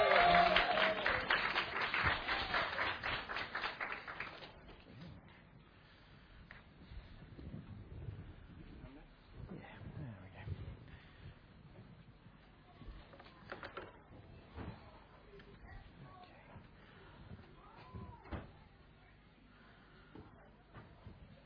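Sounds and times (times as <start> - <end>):
audience applause welcoming a speaker: 0.0 - 4.8.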